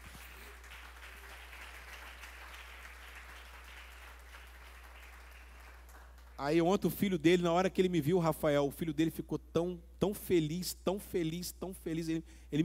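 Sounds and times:
audience applause: 0:00.0 - 0:06.4
speech: 0:06.4 - 0:12.6.

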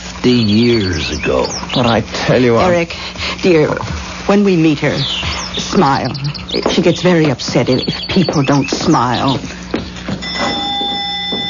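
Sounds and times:
speech: 0:00.2 - 0:09.5
doorbell ringing: 0:10.1 - 0:11.4.

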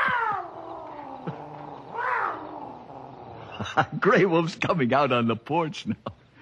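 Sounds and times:
wild cat yowling: 0:00.0 - 0:03.6
speech: 0:03.6 - 0:06.2.

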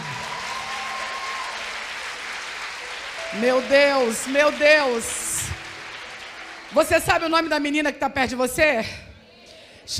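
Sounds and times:
audience applause: 0:00.0 - 0:07.5
speech: 0:03.3 - 0:05.2, 0:06.7 - 0:09.0.

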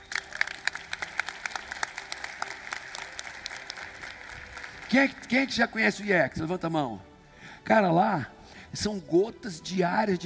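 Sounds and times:
audience applauding: 0:00.0 - 0:05.6
speech: 0:04.9 - 0:10.2.

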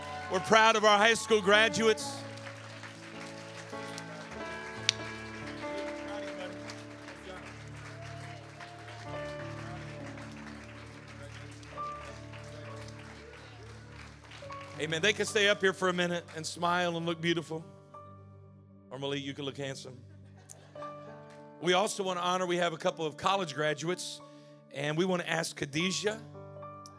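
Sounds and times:
audience applause for graduates: 0:00.0 - 0:15.9
speech: 0:00.3 - 0:02.2, 0:14.8 - 0:17.8, 0:18.9 - 0:20.1, 0:21.6 - 0:26.3.

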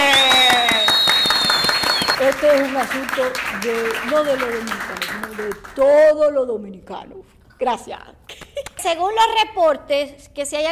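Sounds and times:
high whistling: 0:00.0 - 0:02.2
crowd cheering: 0:00.0 - 0:02.8
crowd applauding: 0:00.0 - 0:05.8
speech: 0:02.4 - 0:10.6.

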